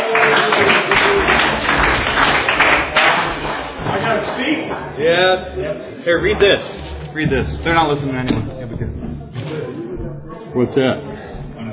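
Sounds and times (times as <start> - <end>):
audience applause welcoming a speaker: 0.0 - 5.0
speech: 5.0 - 9.0, 10.5 - 11.1.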